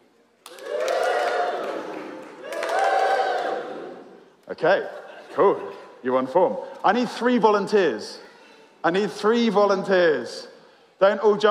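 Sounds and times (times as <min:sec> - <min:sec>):
audience whooping: 0:00.5 - 0:04.0
speech: 0:04.6 - 0:08.2, 0:08.8 - 0:11.4.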